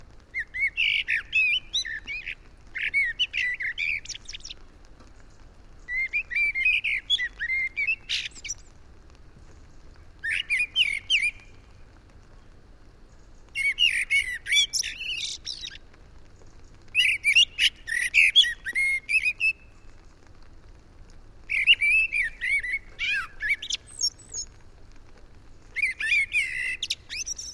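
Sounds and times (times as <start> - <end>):
common blackbird song: 0.4 - 4.6, 5.8 - 8.7, 10.2 - 11.6, 13.2 - 15.8, 16.9 - 19.8, 21.5 - 24.5, 25.7 - 27.5.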